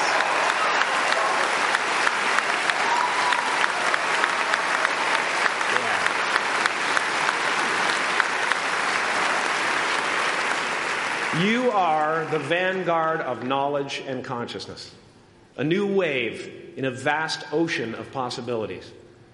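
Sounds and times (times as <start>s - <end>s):
audience applause: 0.0s - 13.1s
speech: 11.4s - 15.0s, 15.6s - 19.0s.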